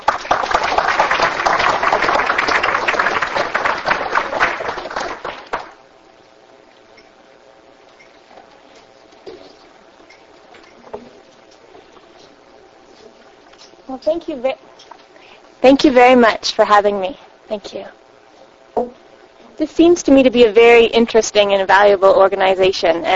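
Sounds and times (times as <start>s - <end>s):
audience applause welcoming a speaker: 0.0s - 5.8s
speech: 14.0s - 14.9s, 15.6s - 18.0s, 19.6s - 23.1s.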